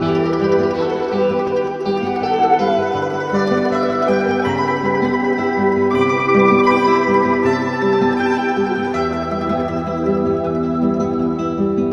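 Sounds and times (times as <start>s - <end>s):
guitar: 0.0s - 11.9s.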